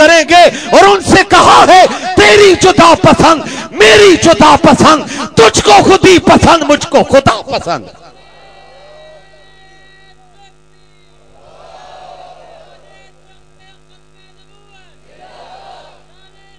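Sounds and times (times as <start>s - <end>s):
constant electrical hum: 0.0s - 16.5s
speech: 2.4s - 8.0s
large rally crowd chanting slogans: 11.4s - 13.0s, 15.1s - 16.1s.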